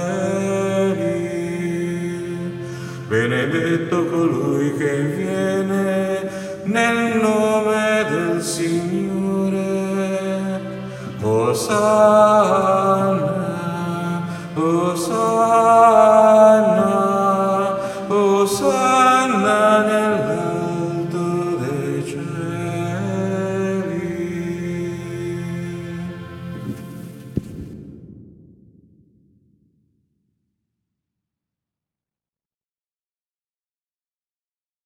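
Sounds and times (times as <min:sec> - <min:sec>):
soprano voices singing: 0:00.0 - 0:27.1.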